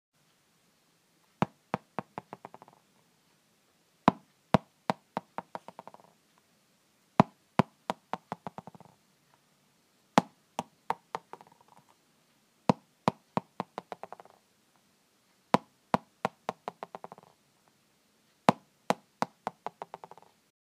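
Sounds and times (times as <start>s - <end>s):
ball bouncing: 1.4s - 2.8s, 4.1s - 6.2s, 7.2s - 9.0s, 10.2s - 12.0s, 12.7s - 14.4s, 15.6s - 17.4s, 18.5s - 20.3s.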